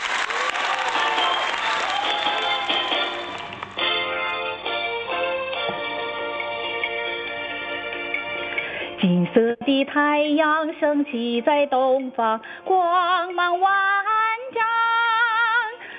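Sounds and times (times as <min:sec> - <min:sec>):
crowd applauding: 0:00.0 - 0:04.3
musical introduction with sustained tones: 0:00.0 - 0:09.0
speech: 0:09.1 - 0:14.6.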